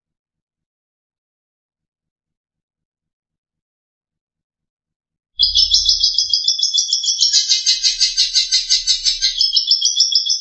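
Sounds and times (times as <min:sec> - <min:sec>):
long-tailed shrike chattering: 0:05.4 - 0:09.7.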